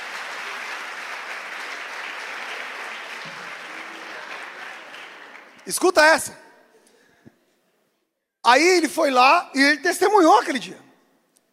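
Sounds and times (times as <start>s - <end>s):
audience applause: 0.0s - 5.9s
speech: 5.6s - 6.4s, 8.5s - 10.8s.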